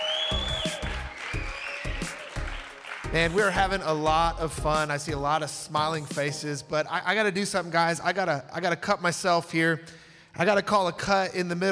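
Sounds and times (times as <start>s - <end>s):
church congregation applause welcoming everyone across several campuses: 0.0s - 3.8s
speech: 3.1s - 11.7s.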